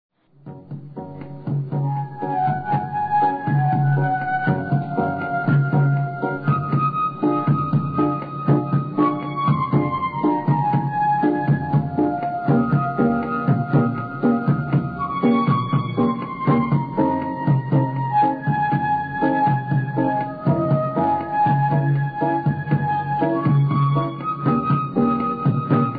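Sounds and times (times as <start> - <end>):
piano: 0.3 - 25.9.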